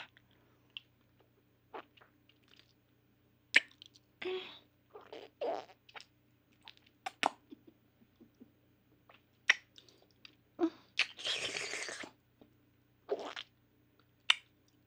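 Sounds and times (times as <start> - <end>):
ASMR oral sex mouth sounds: 3.5 - 4.0, 5.0 - 7.6, 9.1 - 10.0, 11.0 - 12.2, 13.1 - 13.5, 14.3 - 14.5.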